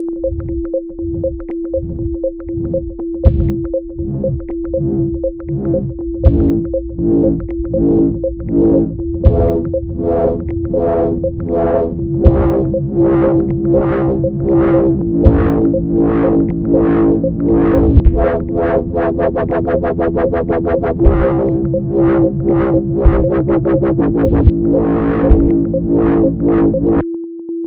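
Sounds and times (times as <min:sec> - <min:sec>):
sine wave tone: 0:00.0 - 0:27.6.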